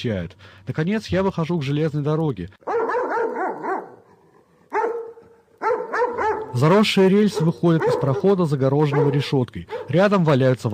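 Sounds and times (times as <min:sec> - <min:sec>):
speech: 0:00.0 - 0:02.8, 0:06.5 - 0:10.7
dogs barking behind a fence: 0:02.6 - 0:10.2.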